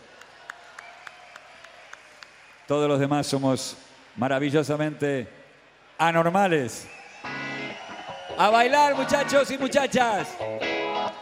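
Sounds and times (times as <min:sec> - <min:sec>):
soft wash of crowd noise: 0:00.0 - 0:11.2
light audience applause with sharp evenly spaced claps: 0:00.1 - 0:02.6
speech: 0:02.7 - 0:05.4, 0:06.0 - 0:07.0, 0:08.4 - 0:10.6.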